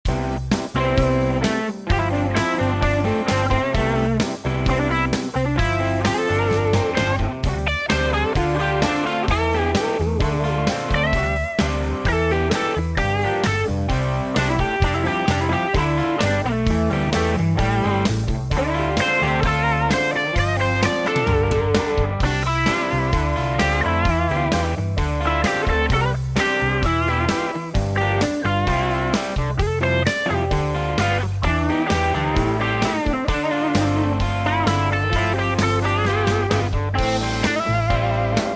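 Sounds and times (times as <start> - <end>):
lead blues guitar: 0.1 - 38.5.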